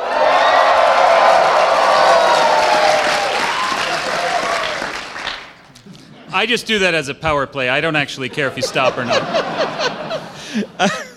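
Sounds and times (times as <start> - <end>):
live audience cheering, screaming and whooping: 0.0 - 5.1
live audience applauding: 0.0 - 5.8
speech: 6.4 - 11.1
laughter: 8.2 - 11.1.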